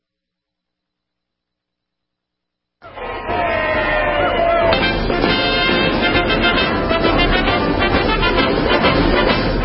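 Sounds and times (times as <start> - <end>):
crowd cheering: 2.8 - 9.5.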